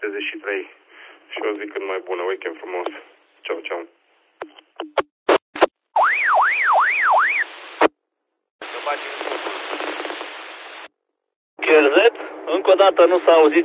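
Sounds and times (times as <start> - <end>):
speech: 0.1 - 5.1, 12.1 - 13.6
alarm: 6.0 - 7.5.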